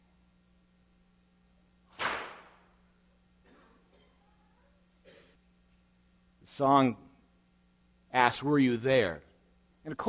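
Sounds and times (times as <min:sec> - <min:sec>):
whip cracking: 0:01.9 - 0:02.7
speech: 0:06.5 - 0:07.0, 0:08.2 - 0:10.0.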